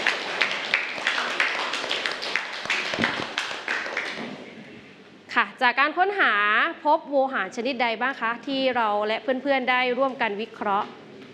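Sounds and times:
group of students clapping for a group: 0.0s - 4.4s
speech: 5.6s - 11.0s.

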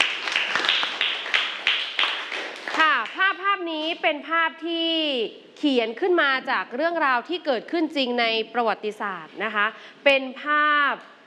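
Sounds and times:
a few people clapping for a student during a lesson: 0.0s - 3.3s
speech: 3.6s - 11.1s.

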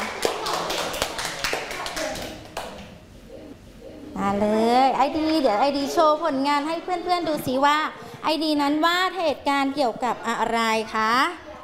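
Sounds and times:
children clapping hands: 0.0s - 2.9s
speech: 4.3s - 11.4s.

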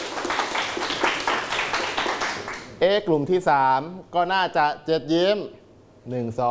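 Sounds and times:
group of participants clapping in rhythm: 0.0s - 2.8s
speech: 2.8s - 6.4s.

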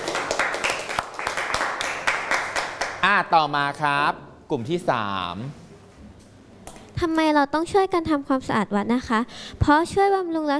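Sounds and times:
group clapping: 0.0s - 3.3s
speech: 3.0s - 5.6s, 7.0s - 10.5s.

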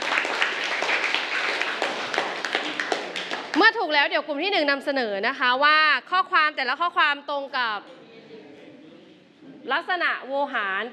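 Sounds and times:
classroom of students clapping: 0.0s - 3.7s
speech: 3.6s - 8.0s, 9.6s - 10.9s.

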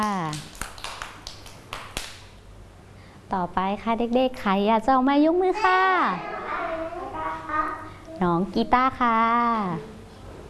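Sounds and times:
children clapping: 0.0s - 2.3s
speech: 3.3s - 6.4s, 8.2s - 9.9s.

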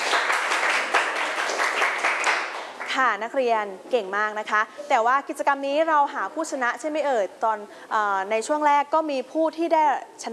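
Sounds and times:
students in a classroom clapping for themselves: 0.0s - 3.0s
speech: 3.0s - 10.3s.

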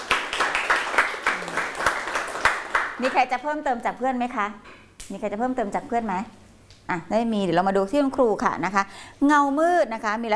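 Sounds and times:
school class clapping for a classmate: 0.0s - 3.2s
speech: 3.0s - 10.3s.

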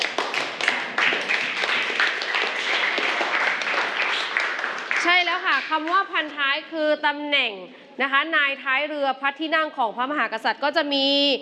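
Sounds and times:
classroom clapping for a classmate: 0.0s - 6.3s
speech: 5.6s - 11.4s.

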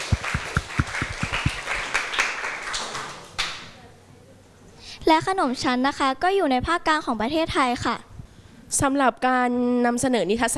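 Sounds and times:
audience applause: 0.0s - 3.6s
speech: 5.1s - 8.1s, 8.7s - 10.5s.

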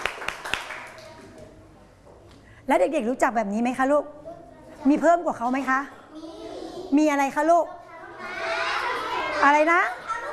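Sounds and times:
children clapping hands: 0.0s - 1.4s
speech: 2.7s - 4.2s, 4.8s - 6.3s, 6.9s - 7.8s, 9.4s - 10.0s.

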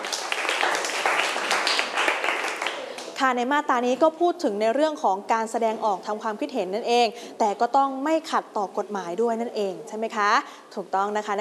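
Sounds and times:
classroom clapping: 0.0s - 3.2s
speech: 3.2s - 11.3s.

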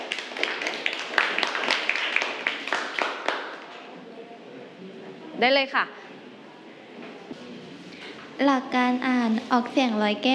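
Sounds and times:
classroom applause: 0.0s - 3.9s
speech: 5.4s - 6.1s, 8.4s - 10.3s.

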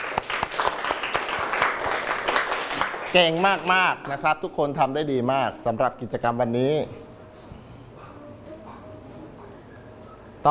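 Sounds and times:
class clapping for themselves: 0.0s - 4.2s
speech: 3.1s - 7.1s.

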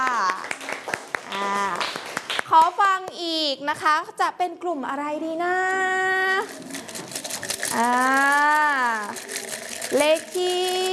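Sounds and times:
class clapping hands: 0.0s - 3.2s
speech: 2.5s - 6.8s, 7.7s - 9.3s, 9.9s - 10.9s.

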